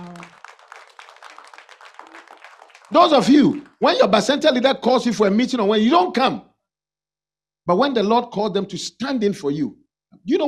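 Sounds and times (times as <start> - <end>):
audience clapping hands: 0.0 - 4.7
speech: 2.9 - 6.5, 7.7 - 10.4.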